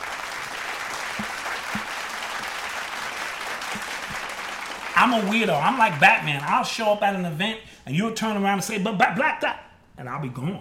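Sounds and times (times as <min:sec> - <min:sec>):
applause: 0:00.0 - 0:06.8
speech: 0:05.0 - 0:10.5.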